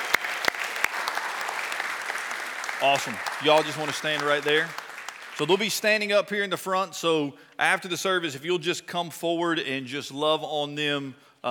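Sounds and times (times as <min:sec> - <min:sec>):
audience clapping: 0:00.0 - 0:06.6
speech: 0:02.8 - 0:04.8, 0:05.4 - 0:11.4.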